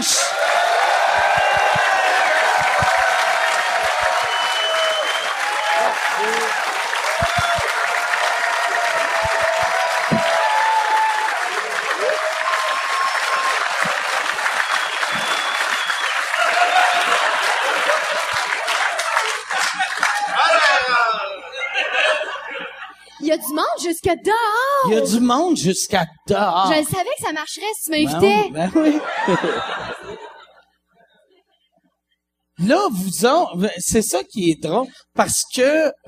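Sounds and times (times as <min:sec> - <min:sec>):
audience applause: 0:00.0 - 0:21.4
laughter: 0:15.1 - 0:23.2, 0:28.3 - 0:31.5
speech: 0:24.0 - 0:29.9, 0:32.6 - 0:36.0.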